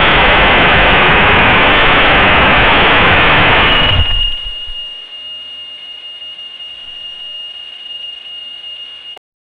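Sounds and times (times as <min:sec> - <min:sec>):
compressed wifi energy burst: 0:00.0 - 0:05.0.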